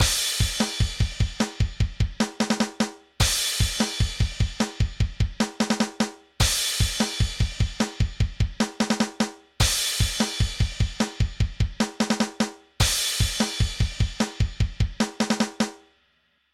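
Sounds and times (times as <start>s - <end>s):
pause music: 0.0s - 15.7s.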